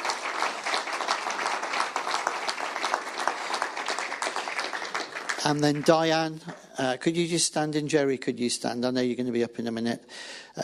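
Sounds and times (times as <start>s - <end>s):
audience applause: 0.0s - 6.8s
speech: 5.4s - 10.6s.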